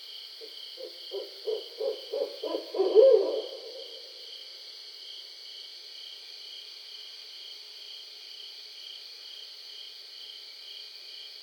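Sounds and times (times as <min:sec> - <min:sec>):
barred owl hooting: 0:00.8 - 0:04.2.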